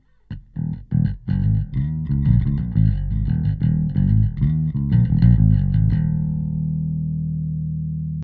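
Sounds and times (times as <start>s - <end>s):
bass: 0.0s - 8.2s.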